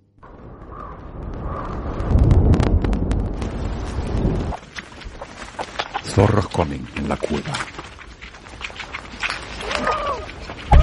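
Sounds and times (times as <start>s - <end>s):
distant thunder in a valley: 0.2s - 4.6s
rain in a valley: 0.2s - 10.8s
speech: 6.2s - 7.8s.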